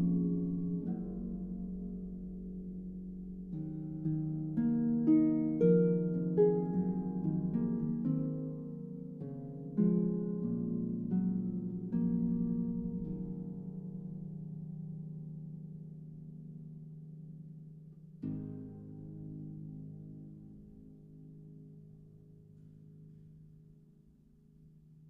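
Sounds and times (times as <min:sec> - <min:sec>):
harp concerto lullaby: 0:00.0 - 0:15.5, 0:18.2 - 0:21.4.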